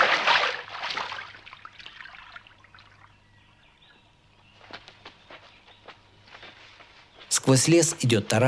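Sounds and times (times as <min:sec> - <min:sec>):
thrown stone splashing into water: 0:00.0 - 0:02.4
speech: 0:07.4 - 0:08.4.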